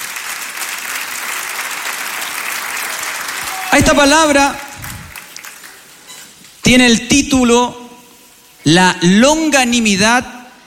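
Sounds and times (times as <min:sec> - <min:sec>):
audience applauding: 0:00.0 - 0:06.0
speech: 0:03.8 - 0:04.7, 0:06.7 - 0:07.8, 0:08.6 - 0:10.4.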